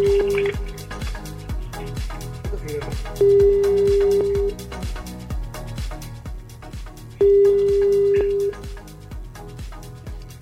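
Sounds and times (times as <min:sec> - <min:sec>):
ringback tone of an unanswered phone call: 0:00.0 - 0:00.5, 0:03.2 - 0:04.6, 0:07.2 - 0:08.6
rapid clicks and taps: 0:00.4 - 0:02.1.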